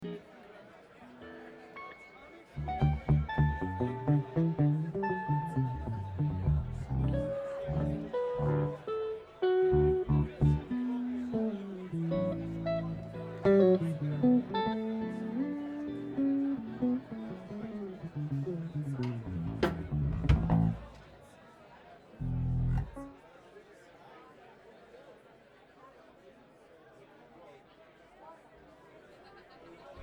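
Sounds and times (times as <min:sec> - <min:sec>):
instrument tuning: 0:02.6 - 0:21.1, 0:22.2 - 0:23.2.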